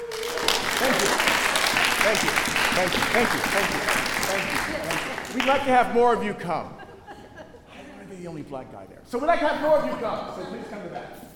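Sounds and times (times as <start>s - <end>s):
audience clapping: 0.0s - 6.0s
laughter: 0.2s - 8.2s
speech: 2.0s - 6.8s, 8.2s - 11.3s.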